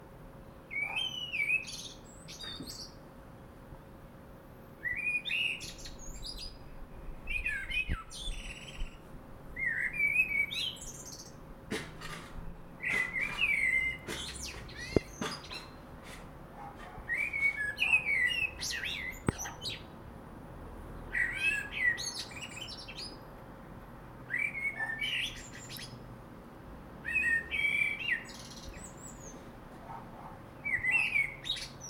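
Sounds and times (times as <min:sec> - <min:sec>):
faint hum: 0:00.0 - 0:31.8
common blackbird singing: 0:00.7 - 0:03.0, 0:04.8 - 0:06.6, 0:07.2 - 0:09.0, 0:09.6 - 0:11.4, 0:12.7 - 0:15.8, 0:16.6 - 0:19.9, 0:21.1 - 0:23.2, 0:24.3 - 0:26.0, 0:27.0 - 0:29.4, 0:30.6 - 0:31.8.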